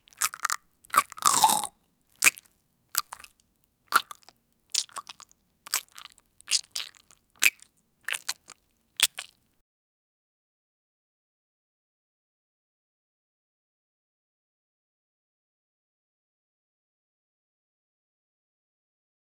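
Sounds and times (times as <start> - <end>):
mouth sounds: 0.0 - 3.3, 3.9 - 9.3.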